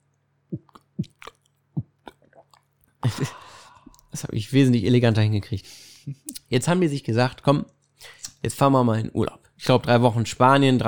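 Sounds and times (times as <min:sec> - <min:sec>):
gulping swallows of water: 0:00.5 - 0:02.7
speech: 0:04.2 - 0:10.8.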